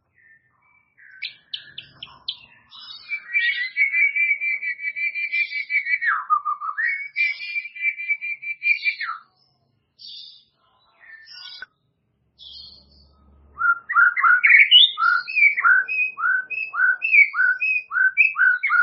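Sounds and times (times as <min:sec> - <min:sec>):
white-rumped shama song: 0:00.2 - 0:09.3, 0:13.6 - 0:18.8.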